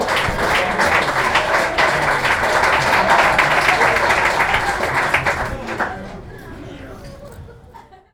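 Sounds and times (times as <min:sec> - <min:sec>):
crowd noise: 0:00.0 - 0:08.1
laughter: 0:00.0 - 0:08.1.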